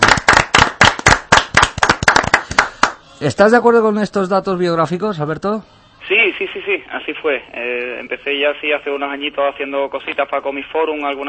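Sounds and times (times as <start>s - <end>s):
applause: 0.0s - 3.0s
speech: 3.2s - 11.2s.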